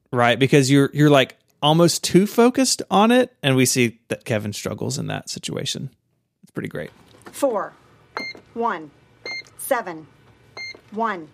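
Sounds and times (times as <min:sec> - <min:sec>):
speech: 0:00.1 - 0:09.0, 0:09.7 - 0:10.2, 0:10.9 - 0:11.3
electronic beeping: 0:08.2 - 0:08.4, 0:09.2 - 0:09.5.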